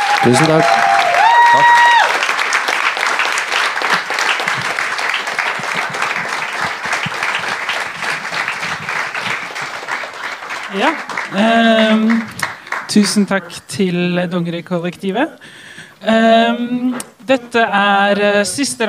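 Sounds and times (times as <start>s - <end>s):
audience applause: 0.0s - 13.4s
speech: 0.2s - 0.9s, 10.8s - 12.3s, 12.9s - 18.8s.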